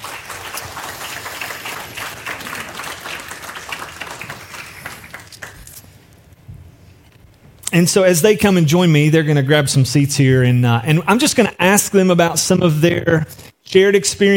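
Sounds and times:
audience applause welcoming a team onto a stage at a morning gathering: 0.0 - 5.8
speech: 7.8 - 14.3.

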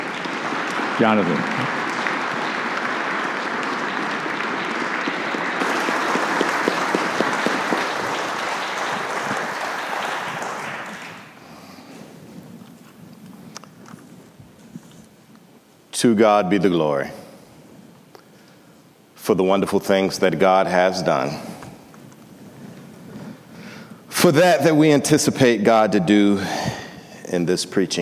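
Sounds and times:
church congregation applauding to welcome a reverend: 0.0 - 12.0
speech: 1.0 - 1.8, 16.0 - 17.2, 19.3 - 21.5, 24.2 - 26.7, 27.3 - 28.0.

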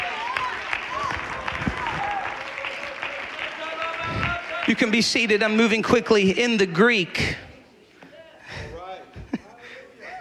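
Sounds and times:
scattered voices and cheers: 0.0 - 5.4
audience clapping hands: 0.0 - 5.8
speech: 4.7 - 7.4.

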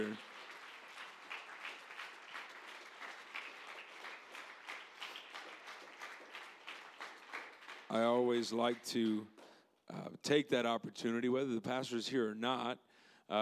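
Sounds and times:
speech: 0.0 - 0.3, 7.9 - 13.4
audience applause: 0.0 - 9.0.

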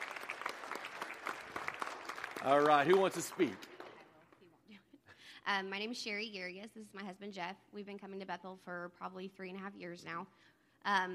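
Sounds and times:
church audience applause: 0.0 - 4.3
speech: 2.4 - 3.7, 5.5 - 11.1.

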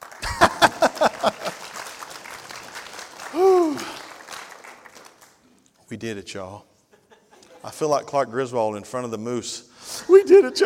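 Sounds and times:
short burst of clapping: 0.0 - 5.4
laughter: 0.2 - 1.8, 6.9 - 7.8
rising-and-falling vocal whoop: 3.3 - 4.0
speech: 5.9 - 6.7, 7.6 - 10.6.

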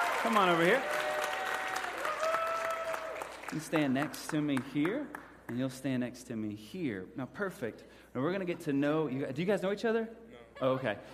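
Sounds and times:
crowd applauding: 0.0 - 5.4
speech: 0.2 - 1.0, 3.5 - 11.1.

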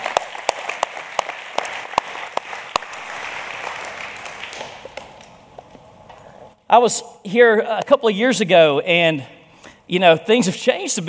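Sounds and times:
audience applause: 0.0 - 5.4
speech: 6.7 - 11.0.

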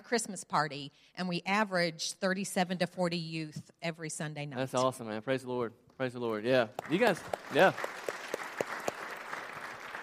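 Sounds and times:
speech: 0.1 - 8.2
light scattered applause from a small audience: 6.5 - 10.0.

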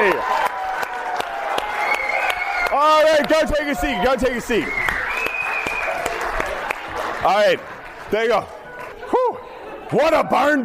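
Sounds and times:
audience applause: 0.0 - 9.9
speech: 2.8 - 4.9, 7.2 - 8.6, 9.9 - 10.6
faint whistle-like tone: 4.6 - 5.9.

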